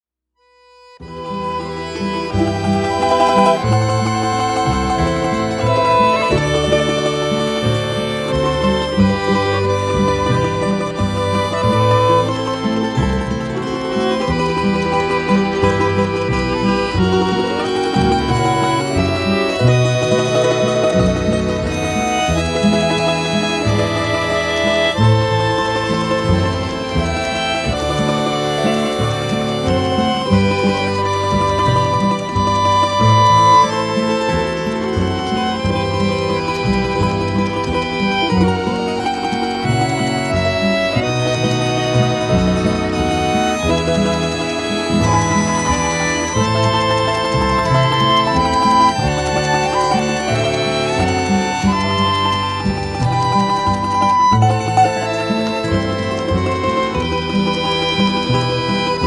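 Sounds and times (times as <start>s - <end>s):
trio playing czardas: 1.0s - 59.0s.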